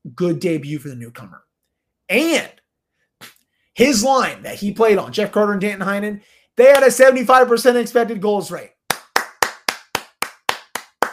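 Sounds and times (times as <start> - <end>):
speech: 0.2 - 1.5, 2.1 - 2.6, 3.8 - 8.8
applause: 8.9 - 11.1.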